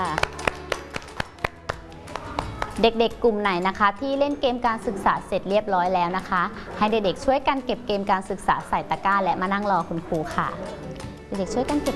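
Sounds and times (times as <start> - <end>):
children clapping: 0.0 - 2.8
speech: 2.8 - 11.9.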